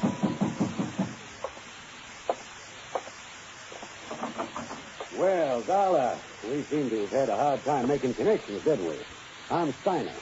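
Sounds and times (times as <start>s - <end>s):
pounding on a door: 0.0s - 1.2s
speech: 5.2s - 10.2s.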